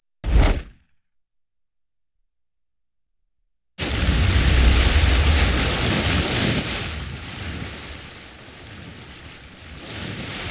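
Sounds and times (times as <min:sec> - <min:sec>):
explosion: 0:00.2 - 0:00.9, 0:03.8 - 0:07.3.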